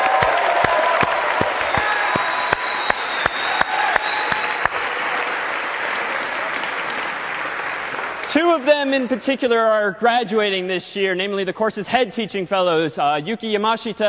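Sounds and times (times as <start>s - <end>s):
audience applause: 0.0s - 9.1s
speech: 8.6s - 14.0s.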